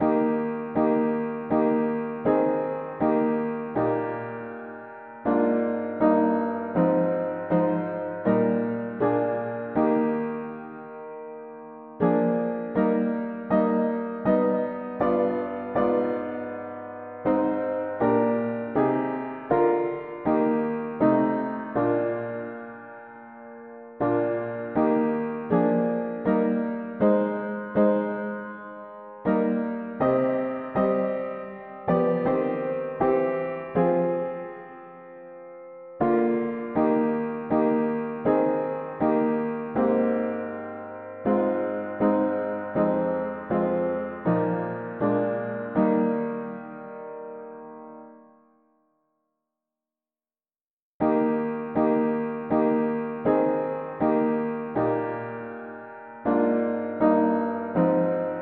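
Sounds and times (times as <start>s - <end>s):
mono piano: 0.0s - 49.1s, 51.0s - 58.3s.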